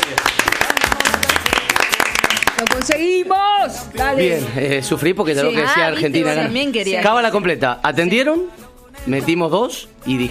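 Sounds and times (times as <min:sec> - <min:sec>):
studio audience applause: 0:00.0 - 0:03.0
speech: 0:02.6 - 0:10.2.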